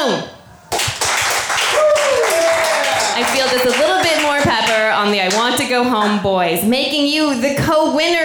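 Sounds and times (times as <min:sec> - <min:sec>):
speech: 0:00.0 - 0:00.4, 0:03.2 - 0:08.2
crowd applauding: 0:00.6 - 0:05.6
thin whistle sliding down in pitch: 0:01.6 - 0:04.4.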